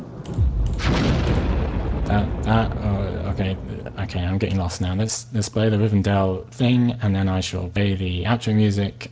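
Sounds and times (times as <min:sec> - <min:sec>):
grenade explosion: 0:00.3 - 0:04.4
speech: 0:02.1 - 0:09.1.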